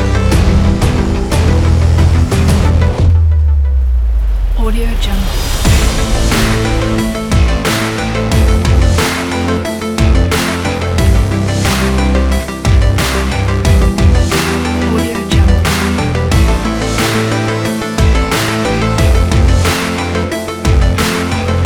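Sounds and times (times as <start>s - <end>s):
epic powerful sport drama music: 0.0s - 21.6s.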